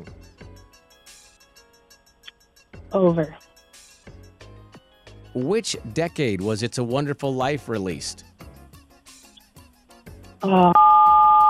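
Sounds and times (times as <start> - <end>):
speech: 2.9 - 3.4, 5.4 - 8.3, 10.4 - 10.8
censor beep: 10.4 - 11.4.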